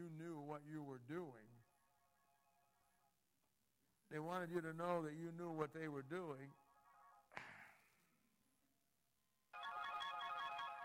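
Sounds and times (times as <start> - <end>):
speech: 0.0 - 1.6, 4.1 - 6.6
telephone ringing: 9.6 - 10.8.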